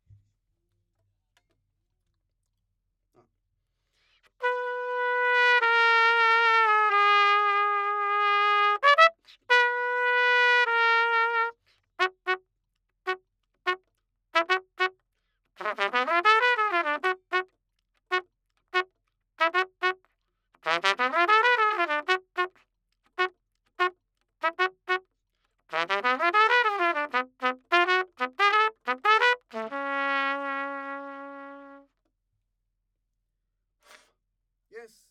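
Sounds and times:
trumpet: 4.3s - 12.4s, 13.1s - 13.8s, 14.4s - 15.0s, 15.6s - 18.2s, 18.8s - 20.0s, 20.6s - 22.6s, 23.2s - 25.1s, 25.7s - 32.0s.

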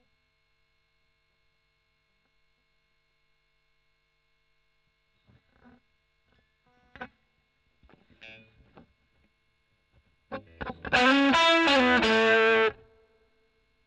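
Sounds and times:
overdriven electric guitar: 7.8s - 8.9s, 10.3s - 13.0s.

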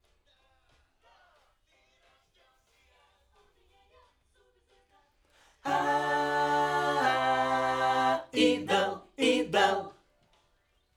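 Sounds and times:
backing vocals on AKG microphone: 5.7s - 9.9s.

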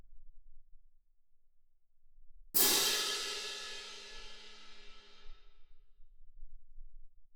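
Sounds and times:
percussion: 2.6s - 5.5s.

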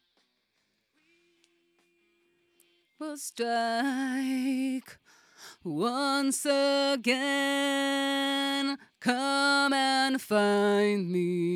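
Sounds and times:
vocals: 3.0s - 11.5s.

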